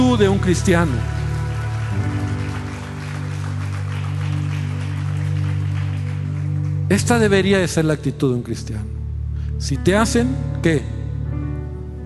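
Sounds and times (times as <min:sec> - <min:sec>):
audience applauding: 0:00.0 - 0:07.6
speech: 0:00.2 - 0:01.2, 0:06.9 - 0:08.9, 0:09.6 - 0:11.0.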